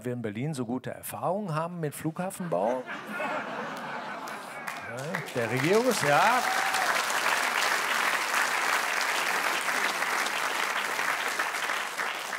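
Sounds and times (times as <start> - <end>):
speech: 0.0 - 3.5, 4.9 - 6.8
laughter: 2.4 - 6.9
audience applause: 3.6 - 12.3.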